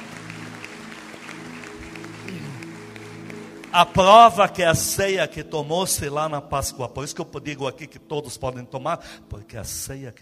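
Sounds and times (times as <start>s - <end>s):
audience applause: 0.0s - 4.6s
speech: 3.7s - 10.2s.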